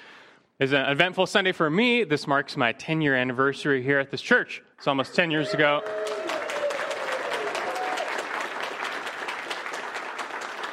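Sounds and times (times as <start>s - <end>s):
speech: 0.6s - 6.2s
audience applause: 5.4s - 10.7s.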